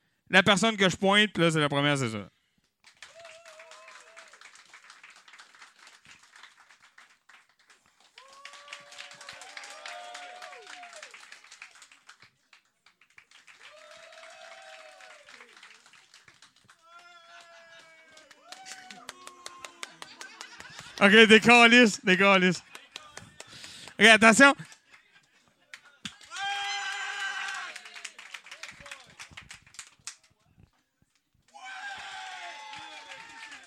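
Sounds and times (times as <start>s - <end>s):
speech: 0.3s - 2.4s, 21.0s - 22.7s, 24.0s - 24.7s
audience applauding to vote: 2.8s - 30.4s, 31.5s - 33.6s
people whooping and cheering: 3.0s - 4.5s, 8.1s - 11.4s, 13.6s - 16.0s, 16.8s - 21.1s, 26.2s - 29.2s, 31.5s - 33.6s
laughter: 16.9s - 26.0s.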